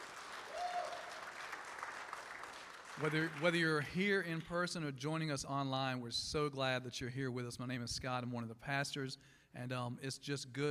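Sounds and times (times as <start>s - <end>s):
crowd audience applauding: 0.0s - 3.9s
speech: 3.0s - 10.7s.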